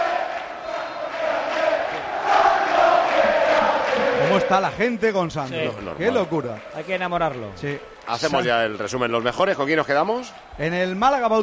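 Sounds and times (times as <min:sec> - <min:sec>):
football crowd chanting a player's name: 0:00.0 - 0:06.9
speech: 0:04.5 - 0:11.4.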